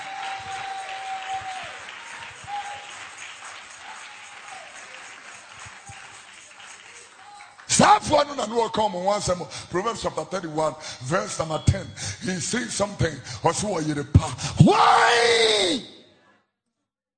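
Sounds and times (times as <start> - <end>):
church congregation clapping hands during a sermon: 0.0 - 9.0
speech: 7.8 - 15.9.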